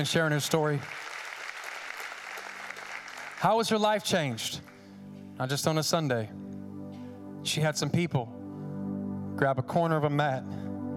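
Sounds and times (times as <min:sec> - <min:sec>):
speech: 0:00.0 - 0:01.1, 0:03.4 - 0:04.7, 0:05.4 - 0:06.5, 0:07.4 - 0:08.4, 0:09.4 - 0:10.6
crowd clapping hands: 0:00.0 - 0:03.8.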